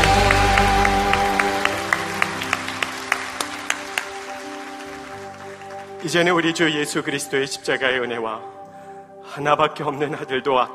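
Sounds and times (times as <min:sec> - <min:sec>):
audience applauding: 0:00.0 - 0:06.7
speech: 0:06.0 - 0:08.6, 0:09.3 - 0:10.7.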